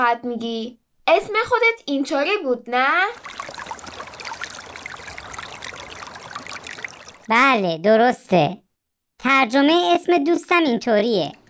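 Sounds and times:
speech: 0:00.0 - 0:03.4, 0:07.3 - 0:08.6, 0:09.2 - 0:11.4
water dripping: 0:03.0 - 0:07.6, 0:10.4 - 0:11.4.

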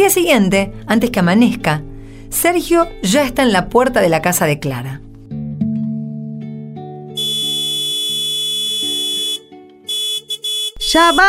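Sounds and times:
speech: 0:00.0 - 0:05.0, 0:10.9 - 0:11.2
car horn honking: 0:07.2 - 0:11.2.

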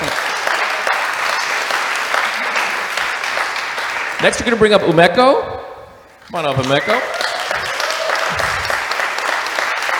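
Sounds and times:
crowd applauding: 0:00.0 - 0:04.9, 0:06.1 - 0:09.9
speech: 0:04.2 - 0:05.5, 0:06.3 - 0:07.1.

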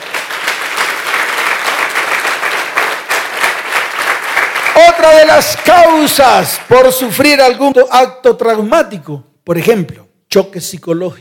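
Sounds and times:
audience applause: 0:00.0 - 0:06.9
speech: 0:04.9 - 0:11.2.

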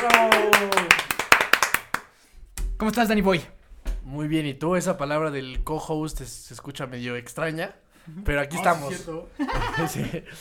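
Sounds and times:
applause: 0:00.0 - 0:02.2
speech: 0:02.8 - 0:10.3
laughter: 0:09.3 - 0:10.3.

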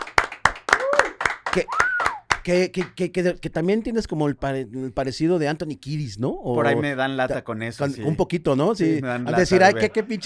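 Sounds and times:
applause, hands clapping: 0:00.0 - 0:03.0
speech: 0:01.5 - 0:10.2.

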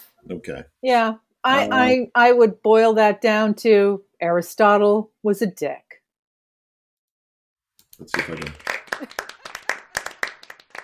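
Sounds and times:
speech: 0:00.2 - 0:05.8, 0:08.0 - 0:09.2
applause sound effect: 0:08.0 - 0:10.8.

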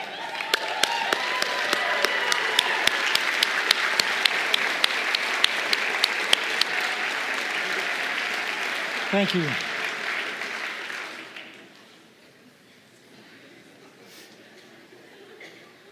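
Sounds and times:
standing audience applauding: 0:00.0 - 0:12.0
speech: 0:09.1 - 0:09.7.

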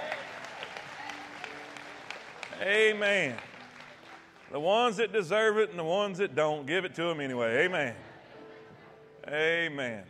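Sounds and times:
audience applauding: 0:00.0 - 0:05.4
speech: 0:02.6 - 0:03.5, 0:04.5 - 0:08.1, 0:09.3 - 0:10.0.

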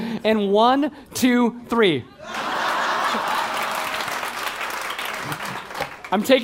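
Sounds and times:
speech: 0:00.2 - 0:02.4, 0:06.1 - 0:06.4
audience laughter turning into applause: 0:02.2 - 0:06.2.

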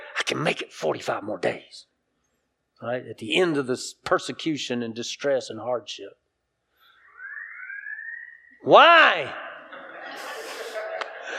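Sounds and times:
speech: 0:00.3 - 0:01.9, 0:02.8 - 0:06.2, 0:08.6 - 0:09.5
building siren test: 0:06.9 - 0:08.7
laughter: 0:09.6 - 0:11.3.

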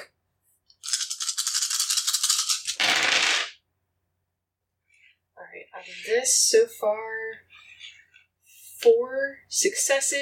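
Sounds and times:
dice being rolled: 0:00.7 - 0:03.6
speech: 0:05.8 - 0:07.4, 0:08.8 - 0:10.2.

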